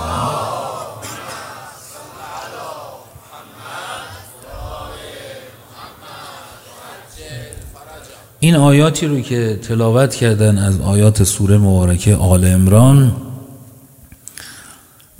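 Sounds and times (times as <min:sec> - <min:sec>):
crowd reciting salawat in unison: 0:00.0 - 0:08.4
speech: 0:08.4 - 0:13.2.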